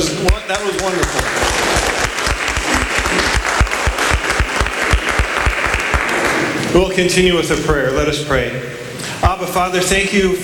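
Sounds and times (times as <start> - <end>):
audience applause: 0.0 - 6.9
speech: 0.2 - 1.9, 6.8 - 10.4.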